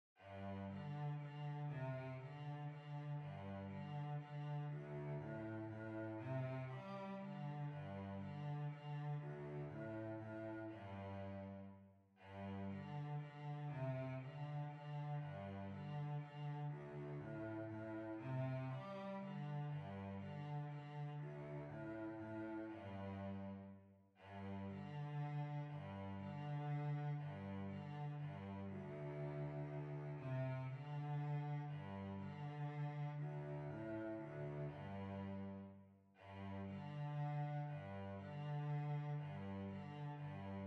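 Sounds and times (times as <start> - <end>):
violoncello: 0.0 - 40.6.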